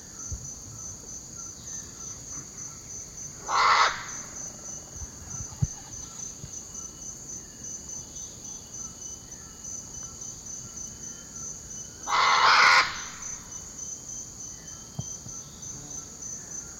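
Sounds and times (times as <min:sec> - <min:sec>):
scarlet macaw harsh squawks in the eastern lowlands of South America: 0:03.4 - 0:04.4, 0:12.0 - 0:13.4.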